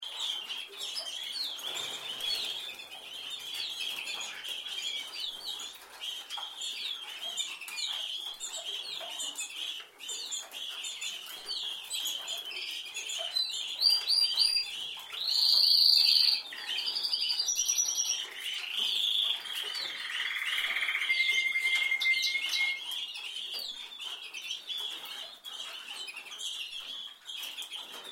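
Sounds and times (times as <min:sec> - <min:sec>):
canary singing: 0:00.1 - 0:28.0.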